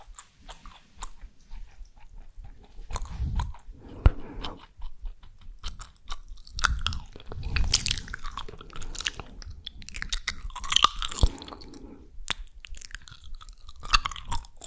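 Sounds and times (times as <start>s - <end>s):
mouth chewing with wet crunches: 0.0s - 14.6s
mouth clicks: 2.9s - 14.6s.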